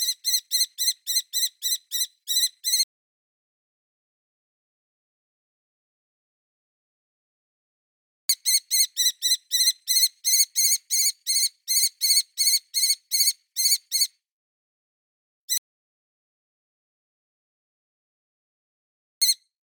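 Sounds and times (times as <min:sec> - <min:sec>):
kestrel calls of piercing chirps: 0:00.0 - 0:02.8, 0:08.3 - 0:14.1.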